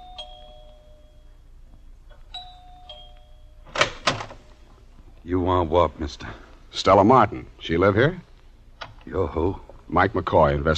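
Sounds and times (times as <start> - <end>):
doorbell chiming: 0.0 - 3.8
speech: 5.2 - 8.3, 9.1 - 10.7.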